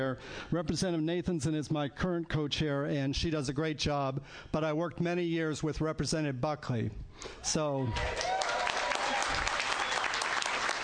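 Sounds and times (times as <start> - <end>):
speech: 0.0 - 8.4
audience clapping at a legislative hearing: 7.9 - 10.8.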